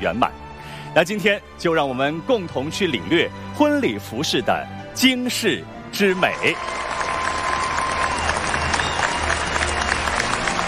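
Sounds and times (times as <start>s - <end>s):
speech: 0.0s - 6.8s
audience applause: 6.1s - 10.6s.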